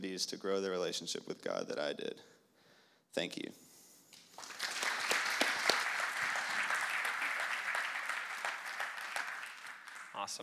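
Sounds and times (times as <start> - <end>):
speech: 0.1 - 2.4, 3.1 - 3.7, 10.2 - 10.4
audience clapping: 4.2 - 10.4.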